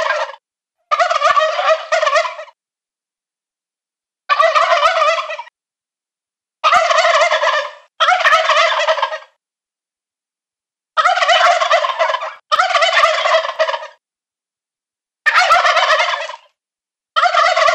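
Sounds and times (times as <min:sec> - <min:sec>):
male turkeys gobbling: 0:00.0 - 0:02.6, 0:04.3 - 0:05.5, 0:06.6 - 0:09.4, 0:11.0 - 0:14.0, 0:15.3 - 0:16.5, 0:17.2 - 0:17.7.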